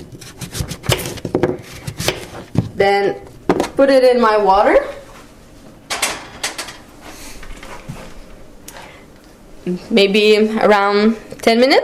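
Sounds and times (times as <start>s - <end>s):
knife cutting carrots into pieces: 0.1s - 2.4s
speech: 2.8s - 5.0s, 9.7s - 11.8s.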